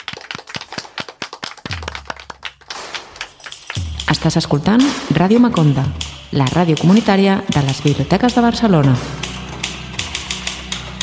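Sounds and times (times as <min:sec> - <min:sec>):
audience applause: 0:00.0 - 0:04.0
speech: 0:04.1 - 0:09.2.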